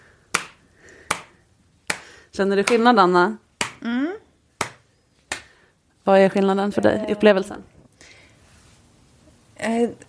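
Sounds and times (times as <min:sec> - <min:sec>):
hand slap on both buttocks: 0:00.3 - 0:03.0, 0:04.6 - 0:05.5
speech: 0:02.4 - 0:04.2, 0:06.1 - 0:07.7, 0:09.6 - 0:10.0.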